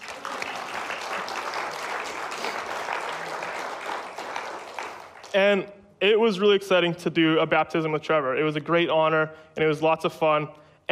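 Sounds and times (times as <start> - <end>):
audience applauding: 0.0 - 5.4
speech: 5.3 - 10.9.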